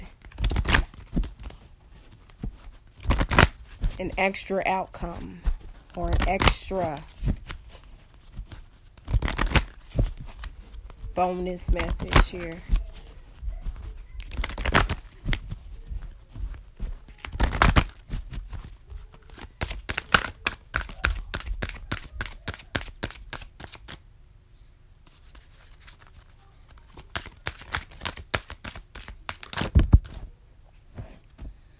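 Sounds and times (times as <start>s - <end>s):
playing cards being shuffled: 0.0s - 24.0s, 25.0s - 31.5s
speech: 4.0s - 7.2s, 11.2s - 12.7s.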